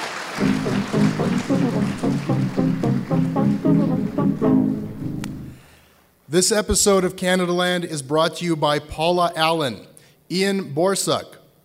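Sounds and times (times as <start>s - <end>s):
crowd clapping in a steady rhythmic beat: 0.0s - 5.6s
speech: 0.4s - 5.2s, 6.3s - 11.4s.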